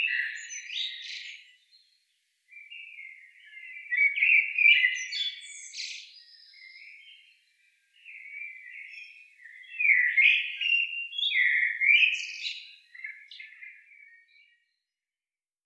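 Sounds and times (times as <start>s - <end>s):
common blackbird Turdus merula singing: 0.0s - 1.9s, 2.5s - 7.4s, 8.0s - 14.5s.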